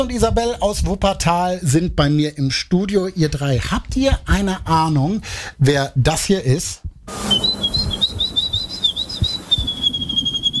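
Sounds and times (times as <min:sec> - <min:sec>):
speech: 0:00.0 - 0:08.0
person whistling an imitation of birdsong: 0:07.2 - 0:10.5.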